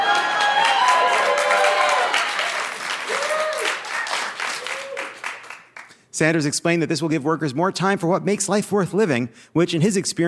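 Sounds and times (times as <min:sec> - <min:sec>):
whoops and whistle-like cheers: 0:00.0 - 0:05.3
crowd applauding: 0:00.0 - 0:05.9
speech: 0:06.2 - 0:10.2.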